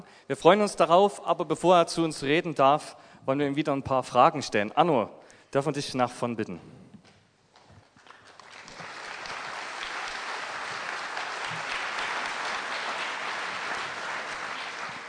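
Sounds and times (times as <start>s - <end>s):
speech: 0.3s - 6.8s
audience clapping: 7.6s - 15.0s.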